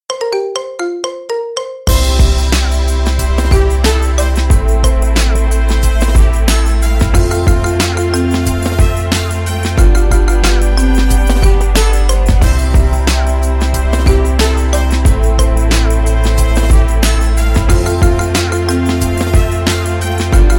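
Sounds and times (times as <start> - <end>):
marimba remix: 0.1 - 20.5.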